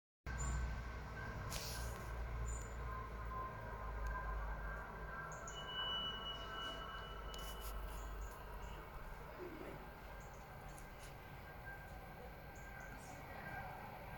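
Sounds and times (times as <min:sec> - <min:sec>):
S-Bahn S40 train pulling into Greifenstein-Altenberg: 0:00.3 - 0:14.1
thin squeal: 0:05.4 - 0:09.0.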